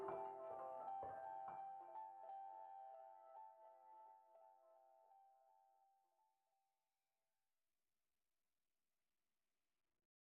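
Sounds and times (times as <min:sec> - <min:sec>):
piano loops mix: 0:00.0 - 0:04.6.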